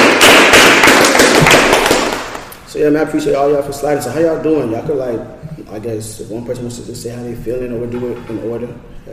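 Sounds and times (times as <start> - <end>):
group of people clapping: 0.0 - 2.6
speech: 2.8 - 9.1.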